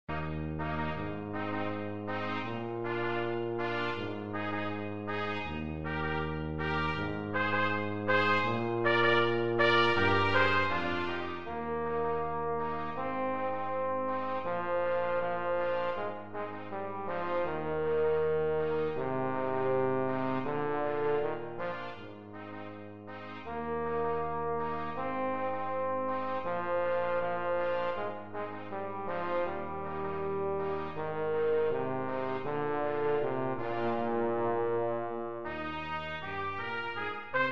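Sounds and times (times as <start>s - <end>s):
brass quartet playing: 0.1s - 37.5s.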